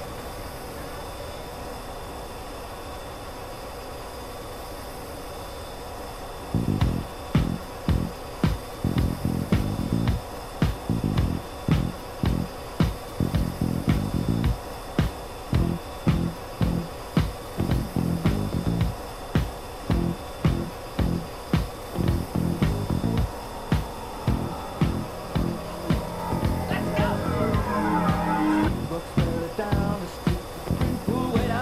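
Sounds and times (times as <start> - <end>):
F-14 Tomcat cockpit engine drone: 0.0 - 31.3
music with thumping beat and bright melody: 6.8 - 31.6.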